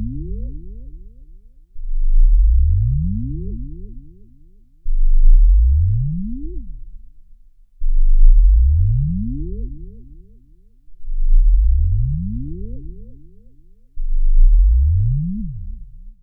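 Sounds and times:
analog sub bass rising: 1.8 - 3.3, 4.9 - 6.3, 7.9 - 9.5, 11.0 - 13.0, 14.0 - 16.1.

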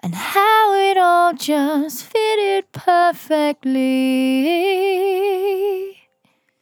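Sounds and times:
vocal in F at 65 bpm: 0.0 - 6.0.

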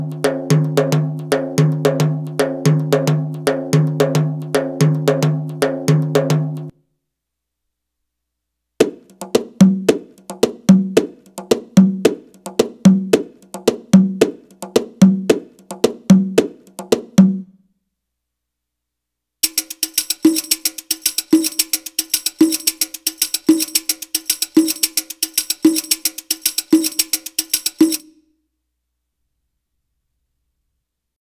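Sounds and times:
Arabic rhythm percussion: 0.0 - 6.7, 8.8 - 17.5, 19.4 - 28.2.

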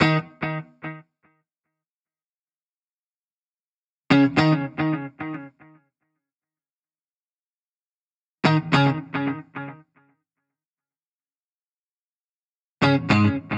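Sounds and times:
1970s-style guitars: 0.0 - 1.4, 4.1 - 6.2, 8.4 - 10.2, 12.8 - 13.5.

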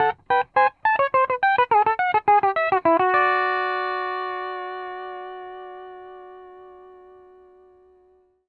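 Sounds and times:
music loop: 0.0 - 3.5.

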